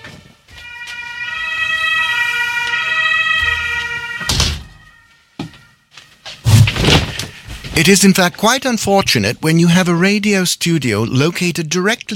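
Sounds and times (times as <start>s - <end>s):
fire truck siren outside a radio studio next to a fire station: 0.0s - 6.4s
speech: 7.8s - 12.1s.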